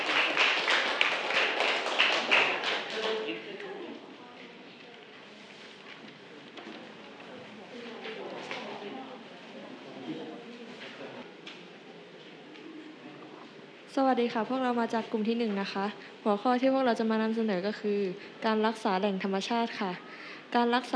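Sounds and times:
group applause: 0.0s - 3.6s
speech: 14.0s - 20.9s.

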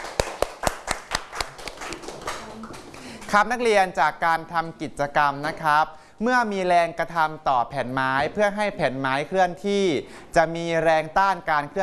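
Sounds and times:
classroom applause: 0.0s - 3.4s
speech: 3.3s - 11.8s.

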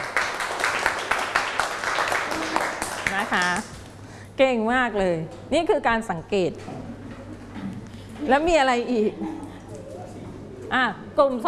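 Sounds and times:
classroom of children clapping for a group: 0.0s - 3.9s
speech: 3.3s - 3.7s, 4.4s - 6.8s, 8.2s - 9.4s, 10.7s - 11.4s.

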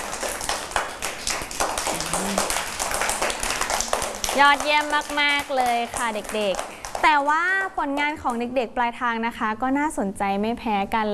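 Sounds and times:
children clapping hands: 0.0s - 7.4s
speech: 4.4s - 11.1s.

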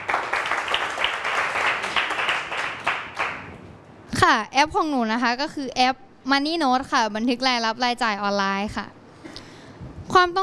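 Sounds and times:
classroom applause: 0.0s - 3.6s
speech: 4.2s - 9.0s, 10.1s - 10.4s.

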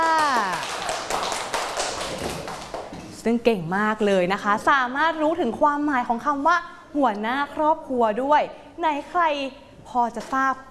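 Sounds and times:
children clapping for a classmate: 0.0s - 3.0s
speech: 3.2s - 10.7s.

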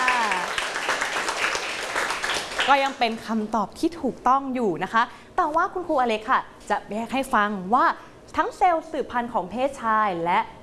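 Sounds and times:
students applauding a classmate: 0.0s - 3.0s
speech: 2.7s - 10.6s.

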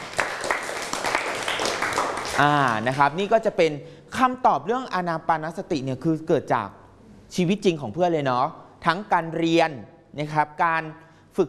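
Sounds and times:
classroom applause for a student who played Thai music: 0.0s - 3.2s
faint noise: 0.0s - 11.4s
speech: 2.4s - 11.4s.

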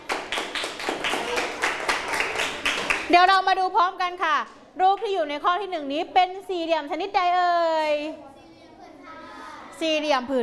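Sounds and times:
classroom clapping for a student: 0.0s - 3.2s
speech: 3.1s - 8.3s, 9.8s - 10.4s.

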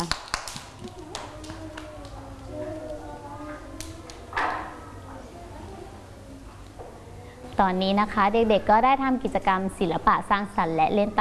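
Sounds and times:
children clapping: 0.0s - 2.6s
speech: 7.6s - 11.1s.

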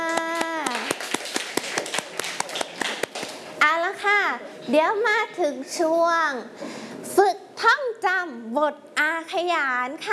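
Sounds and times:
children clapping: 0.0s - 3.4s
speech: 4.7s - 10.1s.

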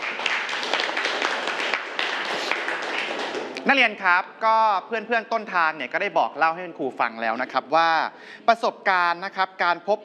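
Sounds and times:
students clapping in a classroom: 0.0s - 3.7s
speech: 3.6s - 10.0s.

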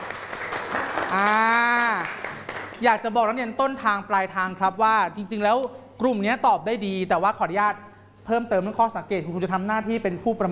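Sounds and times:
students applauding: 0.0s - 2.9s
speech: 1.1s - 1.4s, 2.8s - 10.5s.

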